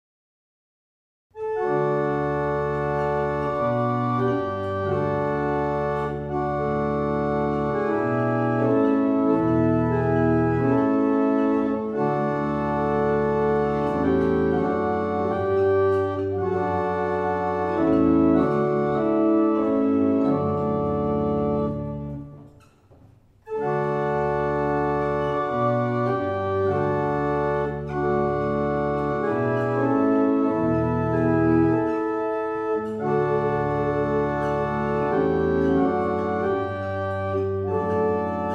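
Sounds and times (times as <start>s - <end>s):
barrel organ playing a double chant: 1.4s - 22.7s, 23.4s - 38.5s.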